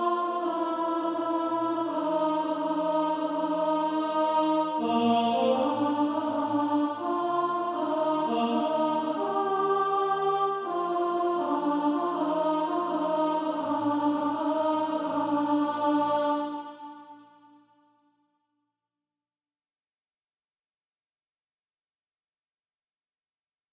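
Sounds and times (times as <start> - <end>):
alto voice singing practice music: 0.0 - 17.2.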